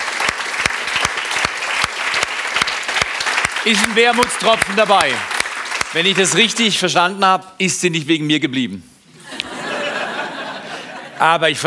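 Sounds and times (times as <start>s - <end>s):
audience applause: 0.0s - 6.5s
speech: 3.6s - 5.3s, 5.9s - 8.9s, 11.2s - 11.6s
laughter: 9.2s - 11.5s.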